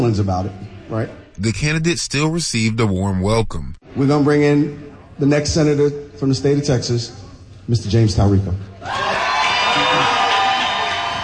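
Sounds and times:
speech: 0.0s - 9.1s
crowd cheering and whooping at a rally for a Democratic Senate candidate in Texas: 8.8s - 11.2s.

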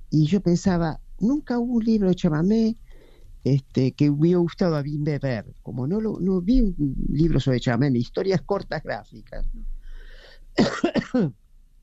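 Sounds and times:
speech: 0.1s - 2.8s, 3.4s - 9.7s, 10.6s - 11.4s
man with a cold coughing: 10.6s - 11.3s.

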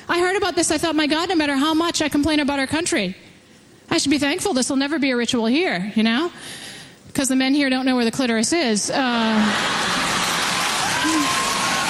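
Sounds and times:
speech: 0.4s - 3.3s, 3.9s - 9.9s
women in audience clapping: 9.8s - 11.8s.

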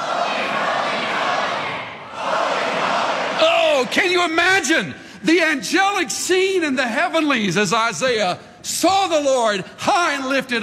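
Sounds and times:
audience screaming loudly: 0.0s - 4.1s
speech: 3.9s - 10.6s.

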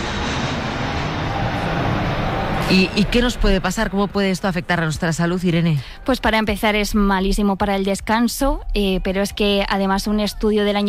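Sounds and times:
airplane engine roar near Madrid-Barajas airport: 0.0s - 6.1s
speech: 2.7s - 10.8s.

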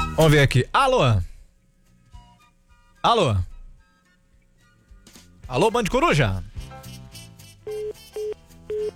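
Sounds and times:
speech: 0.2s - 1.3s, 3.0s - 3.5s, 5.5s - 6.5s
telephone line beeps after a dropped call: 7.7s - 8.9s.

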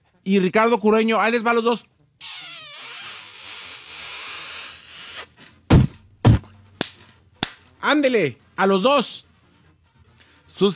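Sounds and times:
speech: 0.2s - 2.5s, 7.9s - 9.2s
sloppy wet spitting kiss: 2.2s - 5.4s
loud spank slaps: 5.7s - 7.7s.

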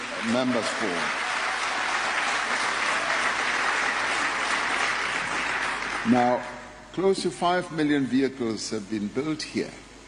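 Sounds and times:
audience applause: 0.0s - 6.3s
speech: 0.2s - 1.2s, 6.0s - 9.8s.

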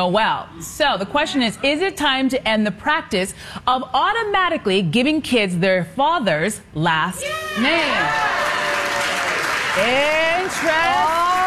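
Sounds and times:
speech: 0.0s - 8.5s, 9.8s - 11.4s
audience clapping: 8.0s - 11.4s.

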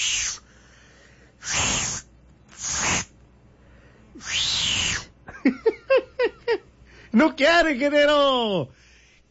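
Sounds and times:
failed attempt at whistling, breathy hisses: 0.0s - 0.6s, 1.4s - 3.1s, 4.1s - 5.1s
speech: 7.2s - 9.3s.

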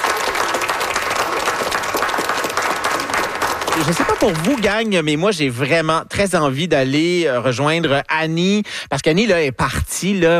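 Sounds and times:
audience applause: 0.0s - 5.1s
speech: 3.8s - 10.3s.

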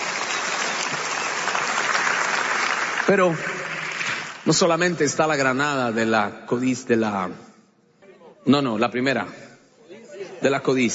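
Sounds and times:
audience applauding: 0.0s - 4.6s
speech: 3.1s - 3.6s, 4.5s - 7.5s, 8.4s - 9.4s, 10.4s - 10.9s.

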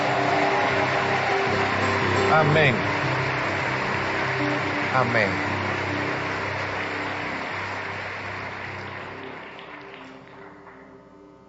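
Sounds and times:
loud audience applause: 0.0s - 10.9s
speech: 2.3s - 3.1s, 5.0s - 5.5s.

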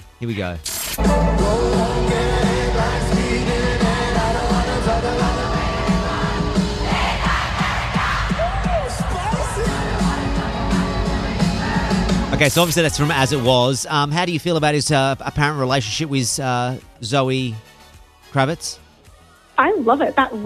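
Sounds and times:
speech: 0.2s - 3.8s, 12.4s - 17.7s, 18.3s - 18.8s, 19.6s - 20.4s
concert fans screaming and cheering: 1.0s - 13.7s.

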